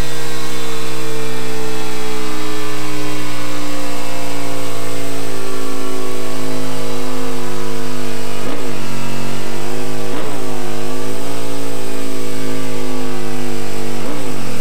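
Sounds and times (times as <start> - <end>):
2000 Aprilia RSV Mille R motorcycle with Akrapovic exhaust pipe: 0.0 - 14.6.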